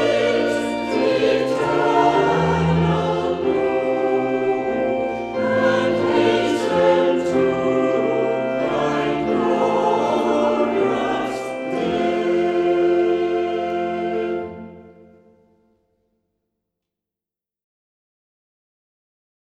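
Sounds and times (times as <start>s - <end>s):
choir singing hymns: 0.0s - 15.4s.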